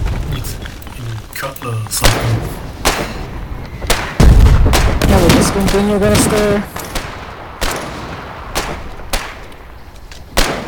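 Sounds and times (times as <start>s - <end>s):
speech: 1.4s - 3.1s, 5.4s - 6.8s
video game gunfire: 2.0s - 9.5s, 10.4s - 10.6s.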